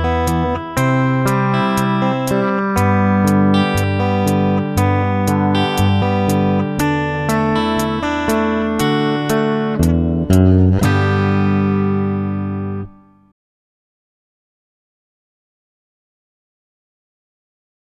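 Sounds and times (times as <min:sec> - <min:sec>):
rhythm guitar: 0:00.0 - 0:13.1.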